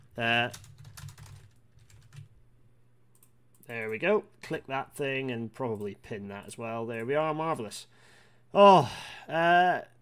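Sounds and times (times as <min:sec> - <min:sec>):
speech: 0:00.2 - 0:00.7, 0:03.7 - 0:09.9
typing a tweet on a computer keyboard: 0:00.4 - 0:02.3.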